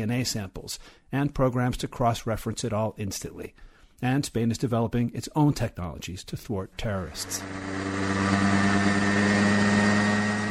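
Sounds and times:
speech: 0:00.0 - 0:08.5
small remote-controlled helicopter engine: 0:06.8 - 0:10.4.

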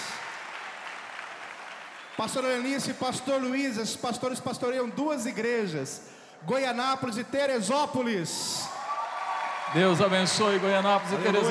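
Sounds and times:
audience applauding: 0:00.0 - 0:02.8, 0:08.7 - 0:11.4
speech: 0:02.2 - 0:08.8, 0:09.7 - 0:11.4.

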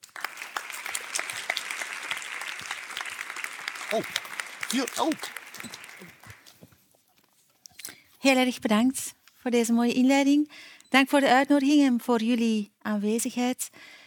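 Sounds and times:
people cheering: 0:00.0 - 0:06.5
audience applause: 0:00.0 - 0:06.6
speech: 0:03.9 - 0:06.1, 0:08.2 - 0:14.0.

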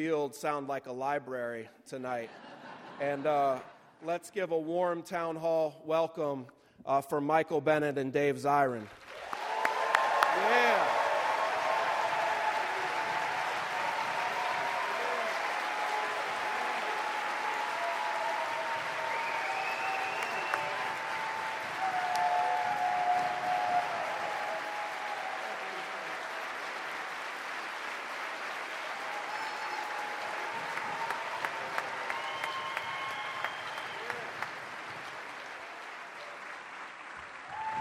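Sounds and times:
speech: 0:00.0 - 0:09.1, 0:10.4 - 0:10.8
loud audience applause: 0:08.9 - 0:37.7.

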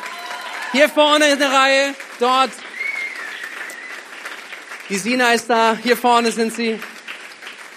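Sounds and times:
audience applause: 0:00.0 - 0:07.7
speech: 0:00.7 - 0:02.7, 0:04.9 - 0:06.9.

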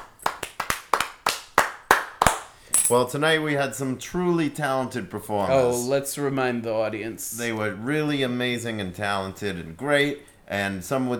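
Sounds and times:
sparse audience hand claps at an open mic show: 0:00.0 - 0:02.6
speech: 0:02.9 - 0:11.1.

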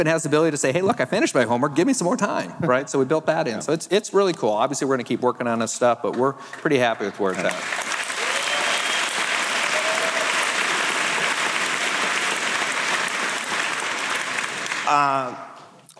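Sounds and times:
speech: 0:00.0 - 0:08.0, 0:14.9 - 0:15.4
keynote audience applause: 0:07.2 - 0:15.2.

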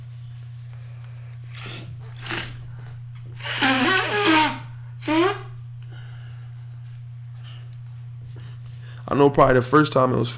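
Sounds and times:
low electrical hum: 0:00.0 - 0:10.3
person blowing nose: 0:01.5 - 0:06.1
speech: 0:09.1 - 0:10.3.

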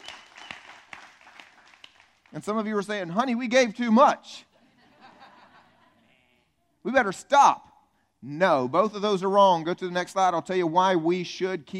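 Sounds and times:
audience clapping: 0:00.0 - 0:02.6
speech: 0:02.3 - 0:04.5, 0:06.8 - 0:11.7
laughter: 0:04.6 - 0:06.5.

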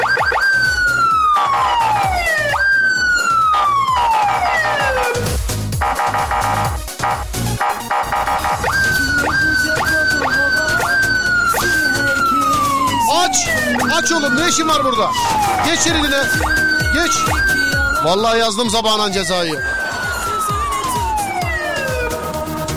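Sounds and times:
siren wailing and yelping: 0:00.0 - 0:22.6
speech: 0:14.5 - 0:19.8.

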